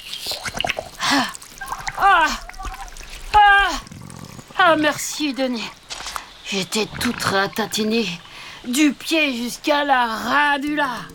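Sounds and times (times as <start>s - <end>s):
water poured from a water bottle onto a snail's body: 0.0s - 11.1s
breathy gasps and sighing vocal reactions of relief: 0.9s - 4.6s
speech: 1.1s - 1.4s, 2.0s - 2.4s, 4.7s - 5.8s, 6.5s - 11.1s.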